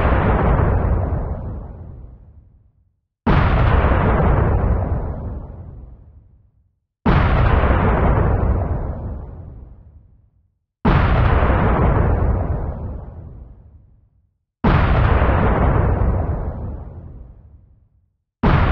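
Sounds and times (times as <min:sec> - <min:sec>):
bomb blast: 0:00.0 - 0:02.2, 0:03.3 - 0:05.9, 0:07.1 - 0:09.8, 0:10.9 - 0:13.6, 0:14.6 - 0:17.6, 0:18.4 - 0:18.6.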